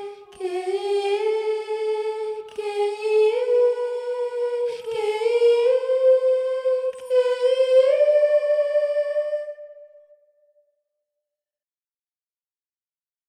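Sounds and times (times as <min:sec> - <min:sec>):
soprano singing a chorale: 0:00.0 - 0:10.1.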